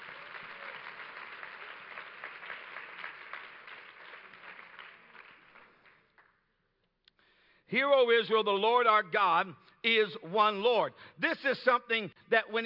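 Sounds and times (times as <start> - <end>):
audience clapping: 0.0 - 6.6
speech: 7.7 - 12.6.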